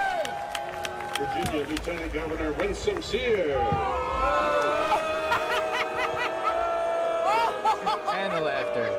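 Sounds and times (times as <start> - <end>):
scattered clapping: 0.0 - 3.4
football stadium crowd cheering: 0.0 - 8.9
speech: 1.2 - 5.6, 7.7 - 8.9
laughter: 4.7 - 8.9.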